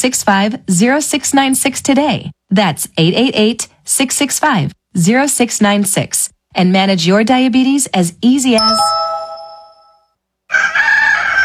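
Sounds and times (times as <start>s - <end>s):
speech: 0.0s - 9.1s
rooster crowing: 10.5s - 11.4s.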